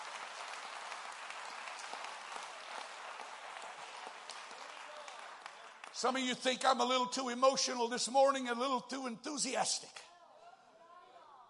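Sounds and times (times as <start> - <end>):
crowd clapping: 0.0 - 6.9
speech: 6.0 - 10.1.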